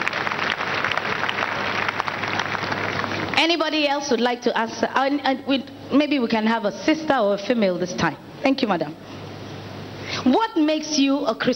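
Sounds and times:
crowd clapping: 0:00.0 - 0:03.5
speech: 0:03.5 - 0:09.2, 0:10.2 - 0:11.5.

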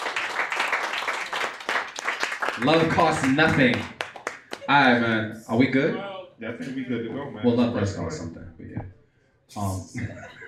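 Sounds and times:
audience clapping: 0:00.0 - 0:04.8
speech: 0:02.6 - 0:04.0, 0:04.7 - 0:10.4.

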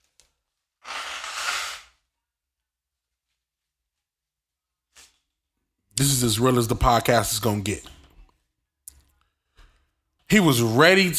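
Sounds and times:
person blowing nose: 0:00.8 - 0:01.9
speech: 0:06.0 - 0:08.0, 0:10.3 - 0:11.1.

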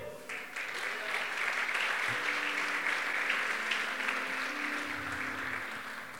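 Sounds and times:
audience applauding: 0:00.0 - 0:06.1.

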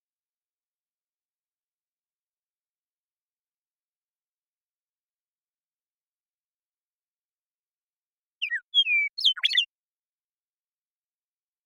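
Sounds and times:
western meadowlark song: 0:08.2 - 0:09.8.

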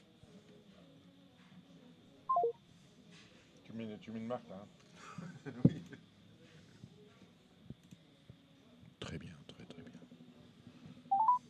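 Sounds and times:
faint steady hum: 0:00.0 - 0:11.4
telephone keypad tones: 0:02.3 - 0:02.5, 0:11.1 - 0:11.4
speech: 0:03.8 - 0:06.1
laughter: 0:05.0 - 0:06.0.

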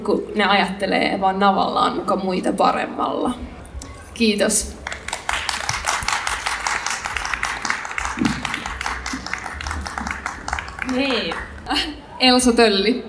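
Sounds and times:
speech: 0:00.0 - 0:03.5, 0:04.2 - 0:04.8, 0:10.9 - 0:13.0
audience applause after a performance: 0:04.7 - 0:11.9.

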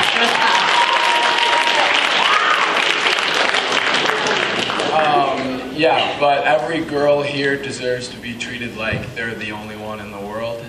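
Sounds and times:
audience clapping: 0:00.0 - 0:05.5
speech: 0:05.8 - 0:10.6.

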